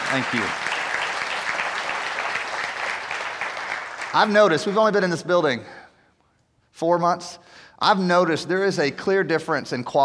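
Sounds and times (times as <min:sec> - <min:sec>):
audience clapping: 0:00.0 - 0:05.2
speech: 0:00.1 - 0:00.7, 0:04.1 - 0:05.8, 0:06.8 - 0:10.0.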